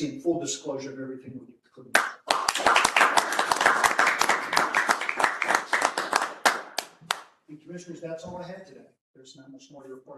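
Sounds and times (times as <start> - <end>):
speech: 0.0 - 3.2, 7.5 - 10.1
applause: 1.9 - 7.4.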